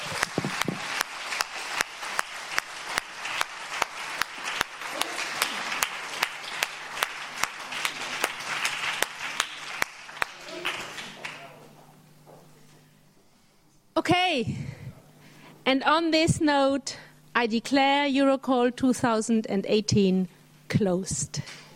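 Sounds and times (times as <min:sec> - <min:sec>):
crowd applauding: 0:00.0 - 0:11.7
speech: 0:15.7 - 0:21.6.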